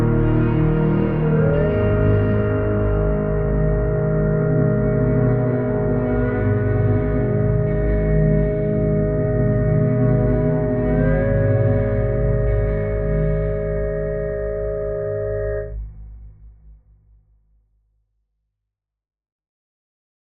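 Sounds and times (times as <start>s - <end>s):
ambient music: 0.0s - 15.9s.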